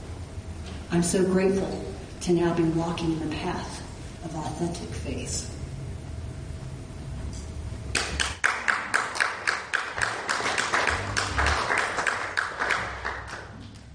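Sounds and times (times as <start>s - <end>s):
speech: 0.9s - 5.6s
applause: 7.9s - 13.9s.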